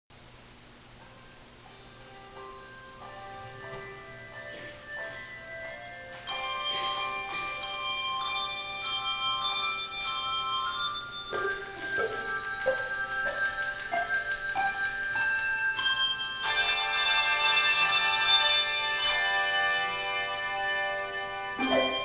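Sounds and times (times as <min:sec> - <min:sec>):
handbells playing a suite: 0:02.1 - 0:22.0.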